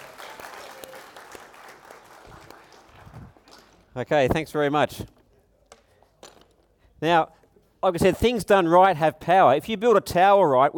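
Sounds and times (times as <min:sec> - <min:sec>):
crowd clapping: 0:00.0 - 0:03.9
speech: 0:04.0 - 0:05.2, 0:07.0 - 0:10.7.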